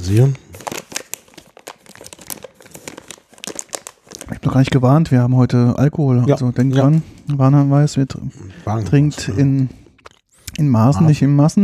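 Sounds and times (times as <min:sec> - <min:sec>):
speech: 0:00.0 - 0:00.4, 0:04.4 - 0:09.8, 0:10.6 - 0:11.6
snack bag crinkling: 0:00.2 - 0:04.4.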